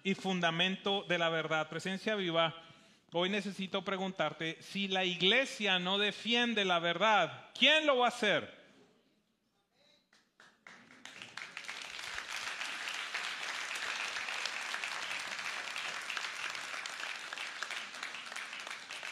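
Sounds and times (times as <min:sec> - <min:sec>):
speech: 0:00.0 - 0:08.6
large crowd applause: 0:10.4 - 0:19.1.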